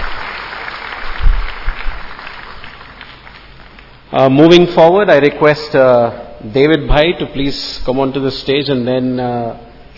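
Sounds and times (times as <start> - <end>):
audience applause: 0.0 - 4.0
speech: 4.1 - 9.9.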